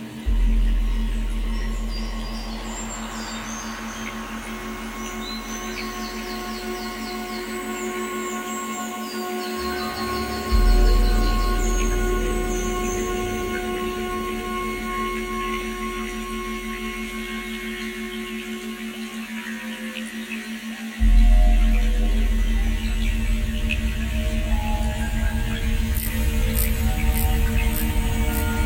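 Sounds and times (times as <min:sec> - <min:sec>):
binaural ambient soundtrack with low hum and sustained tones: 0:00.0 - 0:28.6.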